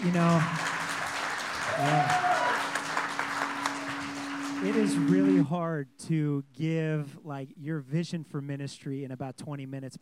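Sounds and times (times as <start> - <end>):
speech: 0.0 - 0.7, 1.8 - 2.3, 4.6 - 10.0
audience applause: 0.0 - 5.4.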